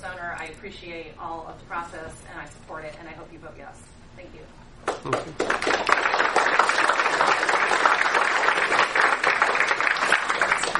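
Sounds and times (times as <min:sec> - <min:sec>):
speech: 0:00.4 - 0:06.8
audience applause: 0:04.9 - 0:10.7.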